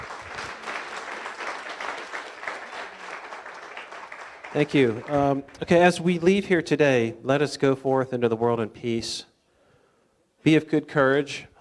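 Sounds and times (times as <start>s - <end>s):
audience clapping: 0.0s - 6.1s
speech: 4.6s - 9.3s, 10.4s - 11.5s.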